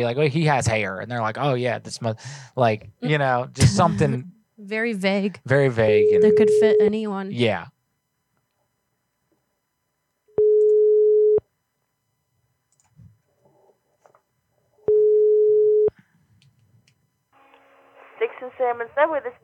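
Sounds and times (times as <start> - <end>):
speech: 0.0 - 7.7, 18.4 - 19.4
telephone ringback tone: 6.0 - 6.9, 10.4 - 11.4, 14.9 - 15.9.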